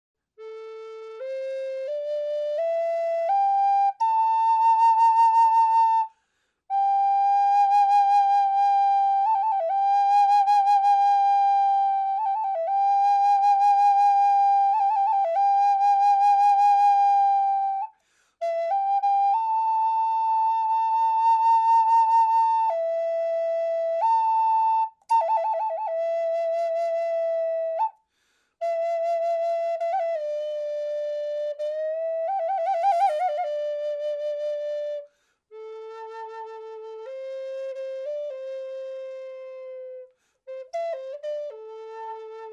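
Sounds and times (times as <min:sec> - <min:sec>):
natural flute: 0:00.2 - 0:42.5.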